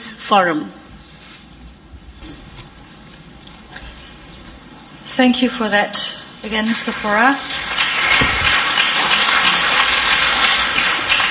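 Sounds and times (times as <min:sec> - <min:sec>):
speech: 0:00.3 - 0:00.8, 0:05.2 - 0:08.4
audience applause: 0:06.6 - 0:11.2.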